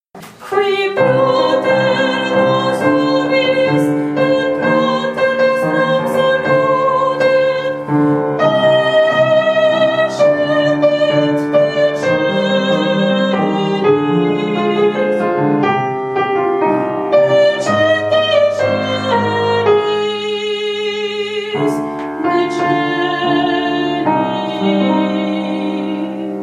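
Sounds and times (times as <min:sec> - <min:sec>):
soprano singing: 0:00.3 - 0:26.4.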